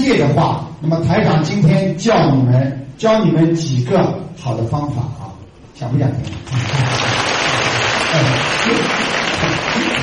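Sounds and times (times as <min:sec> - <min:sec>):
speech: 0:00.1 - 0:07.2, 0:08.1 - 0:10.0
audience applause: 0:06.5 - 0:10.0.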